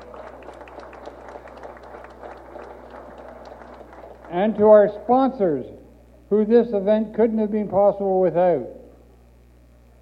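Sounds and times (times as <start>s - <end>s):
crowd applause: 0.0s - 5.1s
low steady hum: 0.0s - 10.0s
speech: 4.3s - 8.8s.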